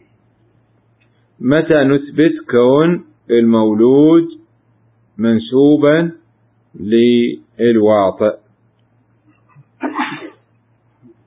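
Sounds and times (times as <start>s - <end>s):
quiet hum: 0.0s - 11.2s
speech: 1.4s - 4.4s, 5.2s - 6.2s, 6.8s - 8.4s
person sneezing during a religious lesson: 9.8s - 10.5s.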